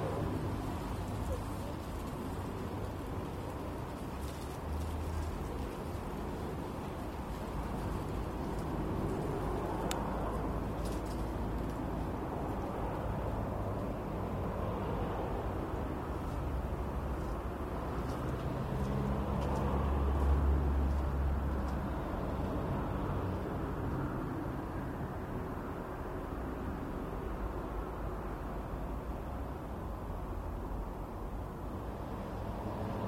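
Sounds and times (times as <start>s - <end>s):
cars passing: 0.0s - 33.0s
footsteps walking: 16.2s - 21.8s.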